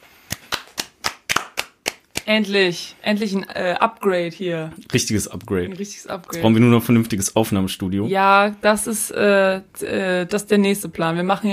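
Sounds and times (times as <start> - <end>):
applause: 0.2 - 2.3
speech: 2.3 - 11.5.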